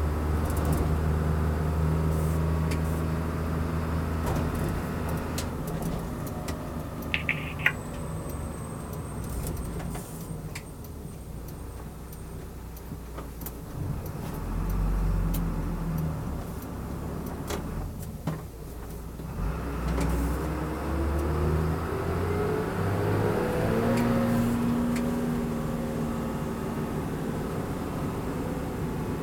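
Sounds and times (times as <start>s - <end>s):
vehicle interior driving noise at start of journey: 0.0s - 29.2s.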